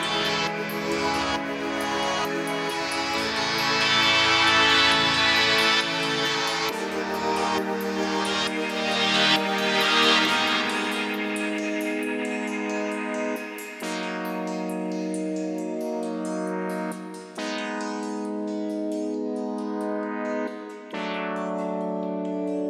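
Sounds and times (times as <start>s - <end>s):
synth pads at 135 BPM: 0.0s - 22.6s.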